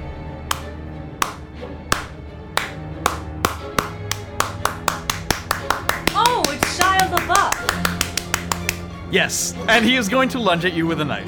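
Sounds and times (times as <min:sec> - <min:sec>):
slow hand clapping: 0:00.5 - 0:08.9
speech: 0:09.1 - 0:11.2.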